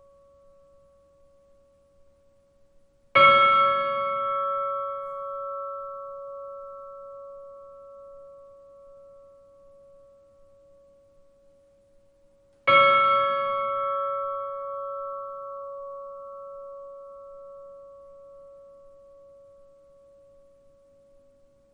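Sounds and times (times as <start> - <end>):
Miðgarðar church bells tolling for a funeral: 3.2 - 10.9, 12.7 - 20.4.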